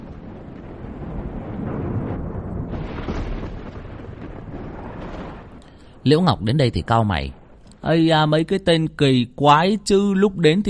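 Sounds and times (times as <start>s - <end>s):
thunder and lightning blast: 0.0s - 10.6s
speech: 6.0s - 10.6s.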